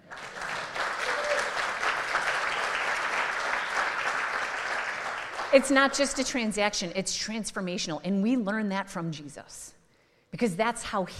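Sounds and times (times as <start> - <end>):
audience applause: 0.0 - 5.6
speech: 5.5 - 11.1.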